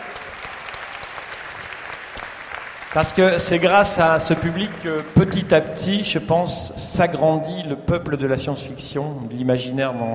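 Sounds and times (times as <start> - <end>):
audience applause: 0.0 - 6.0
speech: 2.9 - 10.1.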